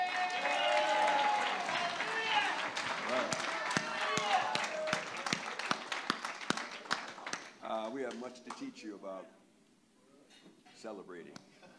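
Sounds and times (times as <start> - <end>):
audience applause: 0.0 - 8.0
speech: 8.4 - 9.4, 10.8 - 11.5.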